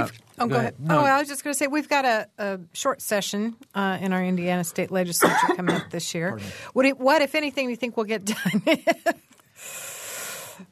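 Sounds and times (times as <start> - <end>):
speech: 0.0 - 9.8
cough: 5.2 - 6.0.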